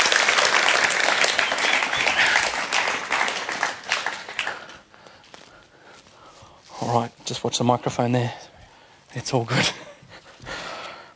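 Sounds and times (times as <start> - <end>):
crowd applauding loudly: 0.0 - 5.0
speech: 6.9 - 8.4, 9.2 - 9.9.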